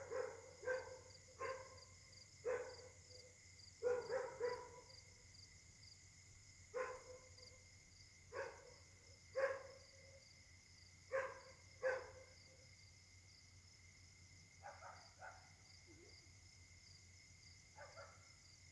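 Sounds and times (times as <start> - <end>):
dog barking: 0.0 - 3.1, 3.8 - 5.0, 6.8 - 7.4, 8.3 - 9.9, 11.1 - 12.4, 14.6 - 15.6, 17.8 - 18.3
insect chorus: 0.0 - 18.7.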